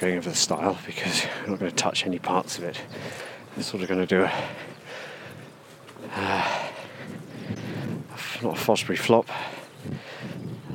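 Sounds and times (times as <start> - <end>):
speech: 0.0 - 4.8, 6.0 - 6.6, 8.4 - 10.1
horse breathing softly: 2.5 - 10.7.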